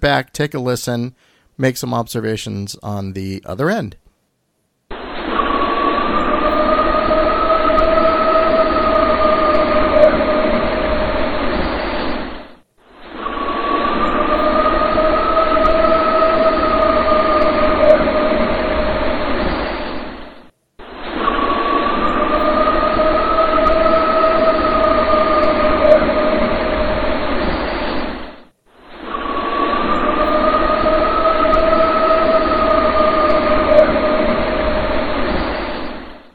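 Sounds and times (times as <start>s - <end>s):
speech: 0.0s - 4.0s
rushing rumbling noise: 4.9s - 36.3s
looped recording of a long howl: 5.3s - 11.9s, 13.2s - 20.0s, 20.9s - 28.0s, 29.0s - 36.2s.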